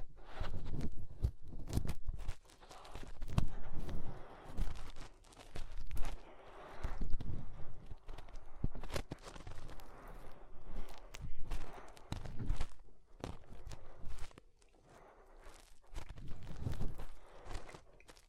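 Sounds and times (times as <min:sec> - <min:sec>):
fingers rubbing and pressing inside the ear: 0:00.0 - 0:18.2.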